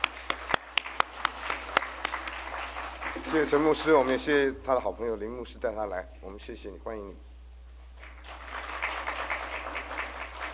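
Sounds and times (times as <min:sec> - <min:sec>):
small audience clapping welcoming a guest speaker: 0:00.0 - 0:03.3, 0:08.0 - 0:10.5
speech: 0:03.3 - 0:07.3.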